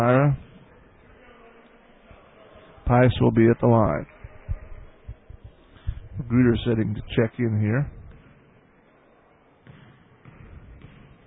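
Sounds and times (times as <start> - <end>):
crowd noise: 0.0 - 11.2
speech: 2.9 - 4.2, 6.2 - 8.0
basketball power dribble at the free-throw line: 8.0 - 8.5, 9.6 - 11.2.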